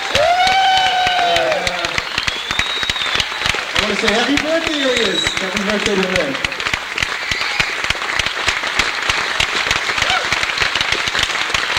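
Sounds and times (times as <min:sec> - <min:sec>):
long high whistle or whooping cheer: 0:00.0 - 0:05.7, 0:07.0 - 0:07.9, 0:09.9 - 0:10.4
crowd applauding: 0:00.0 - 0:11.7
speech: 0:04.0 - 0:06.6.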